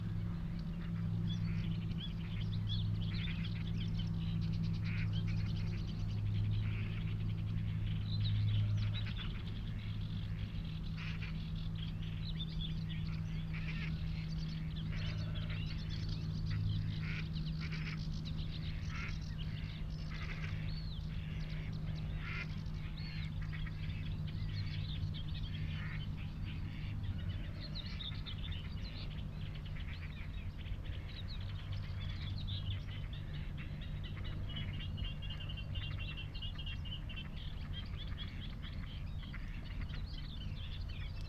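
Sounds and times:
birdsong on Higham Marshes in Kent: 0:00.0 - 0:41.2
steady low hum: 0:00.0 - 0:41.2
duck-like calls: 0:04.7 - 0:05.9, 0:08.8 - 0:11.6, 0:12.9 - 0:24.8, 0:25.4 - 0:40.3.

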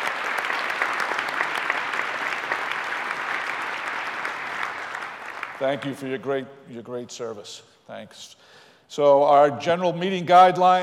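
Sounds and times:
applause for retiring town staff: 0:00.0 - 0:06.1
speech: 0:05.6 - 0:10.8.

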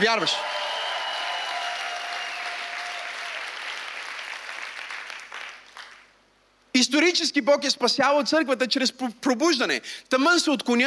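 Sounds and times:
speech: 0:00.0 - 0:00.6, 0:06.8 - 0:10.8
audience clapping: 0:00.0 - 0:06.2.

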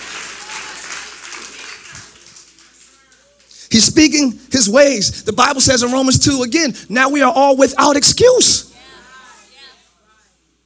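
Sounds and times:
audience clapping hands: 0:00.0 - 0:03.6
speech: 0:03.8 - 0:08.7.

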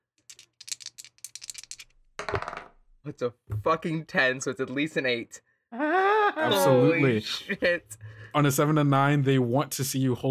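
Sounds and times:
dice rattling and clattering: 0:00.2 - 0:02.8
speech: 0:03.0 - 0:10.2
laughter: 0:05.8 - 0:07.8.

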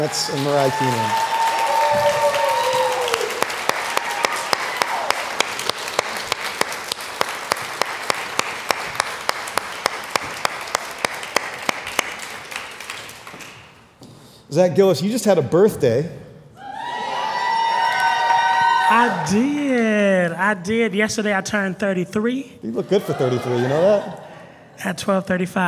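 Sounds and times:
laughter: 0:00.0 - 0:01.3, 0:22.6 - 0:24.9
speech: 0:00.0 - 0:01.3, 0:14.6 - 0:16.2, 0:19.0 - 0:24.2, 0:24.8 - 0:25.6
audience applauding to welcome panel members: 0:00.0 - 0:13.8, 0:16.8 - 0:20.2, 0:22.7 - 0:24.2.

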